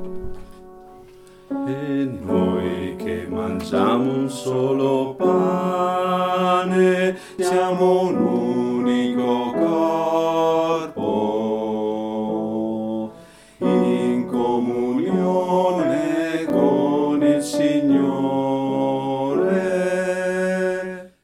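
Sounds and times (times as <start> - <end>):
bass voices singing: 1.6 - 21.2.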